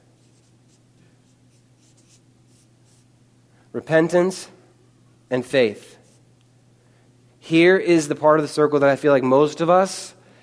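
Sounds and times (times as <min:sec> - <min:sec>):
writing on a board: 0:00.2 - 0:03.0
speech: 0:03.8 - 0:04.6, 0:05.3 - 0:06.0, 0:07.5 - 0:10.2.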